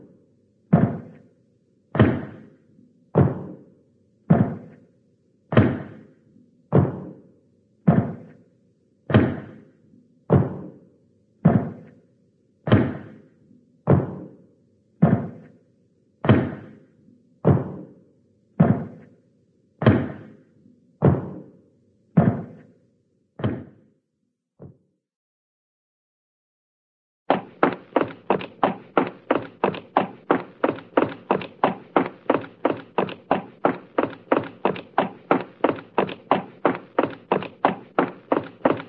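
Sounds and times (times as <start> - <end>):
cartoon giant footsteps: 0.7 - 1.2, 2.0 - 2.5, 3.2 - 3.7, 4.3 - 4.8, 5.5 - 6.0, 6.7 - 7.2, 7.9 - 8.4, 9.1 - 9.6, 10.3 - 10.8, 11.4 - 12.0, 12.7 - 13.2, 13.9 - 14.4, 15.0 - 15.5, 16.2 - 16.8, 17.4 - 18.0, 18.6 - 19.1, 19.8 - 20.4, 21.0 - 21.5, 22.2 - 22.7, 23.4 - 23.8, 27.3 - 38.8.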